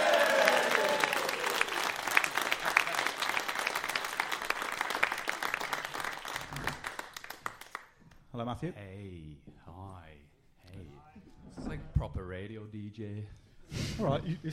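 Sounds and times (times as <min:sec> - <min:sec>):
crowd cheering: 0:00.0 - 0:07.0
crowd applause: 0:00.0 - 0:07.8
speech: 0:08.4 - 0:10.3, 0:11.6 - 0:14.5.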